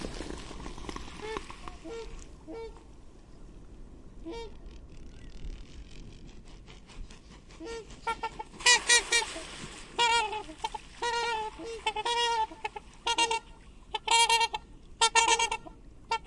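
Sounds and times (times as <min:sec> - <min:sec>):
Black swan Cygnus atratus giving harsh harmonic honking calls: 0:01.2 - 0:02.8, 0:07.6 - 0:16.2.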